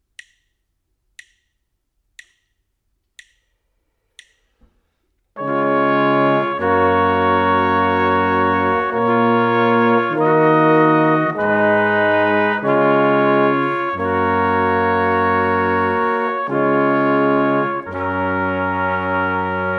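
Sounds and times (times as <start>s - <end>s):
brass quartet: 5.4s - 19.7s.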